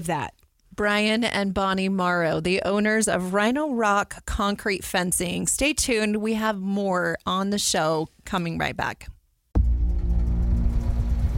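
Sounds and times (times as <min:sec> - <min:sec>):
speech: 0:00.0 - 0:09.2
car engine running: 0:09.6 - 0:11.3.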